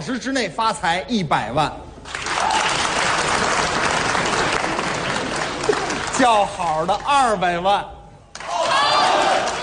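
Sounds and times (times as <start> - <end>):
speech: 0.0 - 2.6, 6.2 - 8.0
audience applause: 2.1 - 6.6, 8.4 - 9.6.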